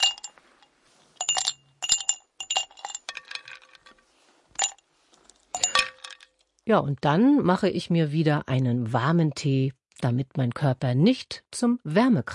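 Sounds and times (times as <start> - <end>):
ice cubes clinking in a glass: 0.0 - 0.3, 1.2 - 4.0, 4.6 - 4.8, 5.5 - 6.5
speech: 6.7 - 12.3.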